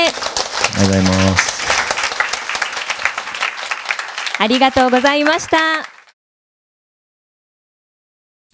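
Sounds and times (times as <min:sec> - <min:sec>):
speech: 0:00.0 - 0:01.5, 0:04.4 - 0:05.9
large audience applause: 0:00.0 - 0:06.2.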